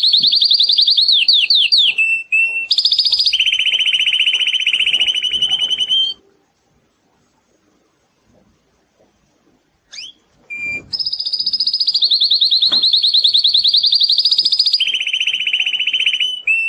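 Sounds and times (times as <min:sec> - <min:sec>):
canary singing for training: 0:00.0 - 0:06.2, 0:09.9 - 0:16.6.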